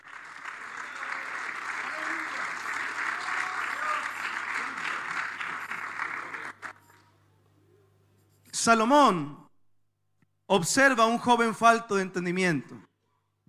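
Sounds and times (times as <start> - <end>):
audience clapping in praise: 0.0 - 7.1
speech: 8.6 - 9.4, 10.5 - 12.9.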